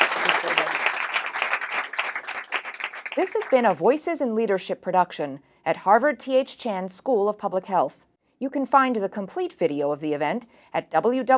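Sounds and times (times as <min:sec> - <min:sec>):
studio audience applause: 0:00.0 - 0:03.8
speech: 0:03.2 - 0:11.3.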